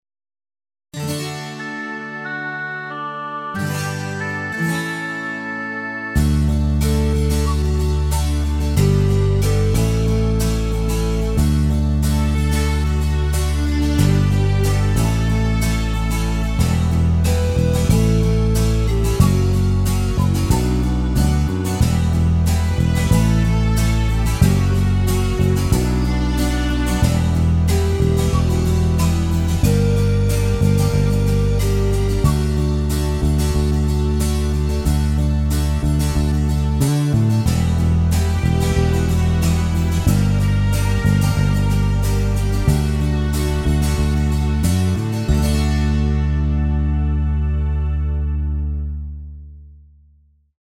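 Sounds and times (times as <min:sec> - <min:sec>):
backing music: 0:01.0 - 0:48.9.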